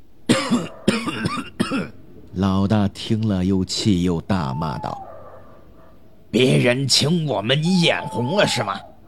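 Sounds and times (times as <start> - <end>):
old man coughing violently: 0.3 - 2.0
speech: 0.5 - 5.1, 6.3 - 8.9.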